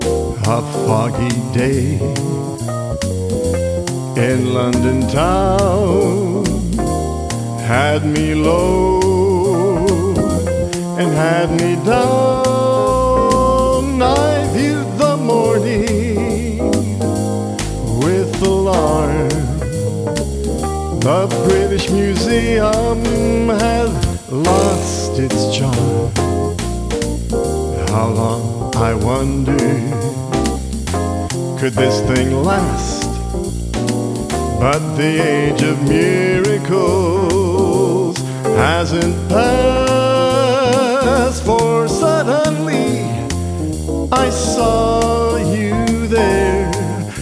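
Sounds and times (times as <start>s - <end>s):
vocals: 0.1s - 26.7s, 27.7s - 33.6s, 34.2s - 47.2s.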